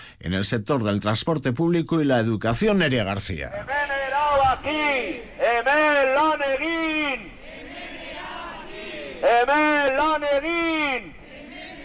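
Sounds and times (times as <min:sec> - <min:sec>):
speech: 0:00.2 - 0:07.3, 0:09.2 - 0:11.1
crowd chanting at a street demonstration during a Basque public sector strike: 0:04.3 - 0:11.8.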